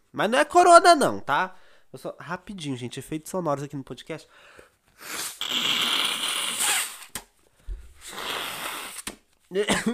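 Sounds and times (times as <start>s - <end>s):
speech: 0.1s - 5.7s, 9.5s - 9.9s
person blowing nose into a tissue: 4.9s - 7.2s, 7.9s - 9.2s.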